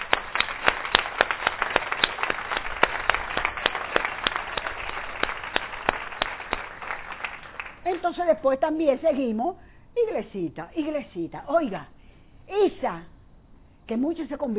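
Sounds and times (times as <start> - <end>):
audience applause: 0.0 - 7.9
speech: 8.0 - 13.1, 13.9 - 14.5.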